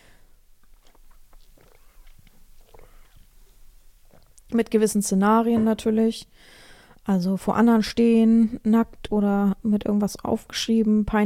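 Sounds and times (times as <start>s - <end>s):
person sipping a drink: 0.1s - 4.5s
speech: 4.5s - 11.2s.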